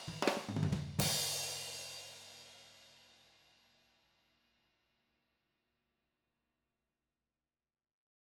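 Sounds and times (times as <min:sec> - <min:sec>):
drums recorded with spaced cardioid overhead microphones: 0:00.0 - 0:03.5.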